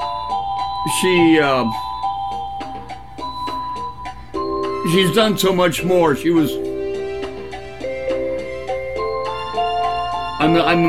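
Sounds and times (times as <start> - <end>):
electronic keyboard melody: 0.0 - 10.8
speech: 0.8 - 1.9, 4.8 - 6.6, 10.4 - 10.8.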